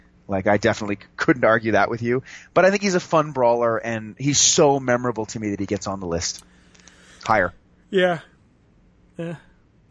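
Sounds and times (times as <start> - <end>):
speech: 0.3 - 6.5, 7.2 - 8.3, 9.2 - 9.5
person yawning: 9.2 - 9.5.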